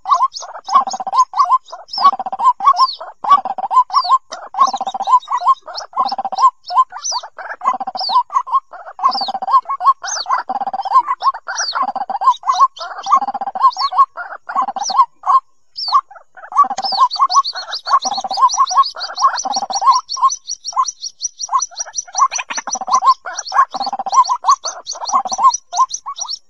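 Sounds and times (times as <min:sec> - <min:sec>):
white-breasted waterhen calls: 0:00.0 - 0:26.4.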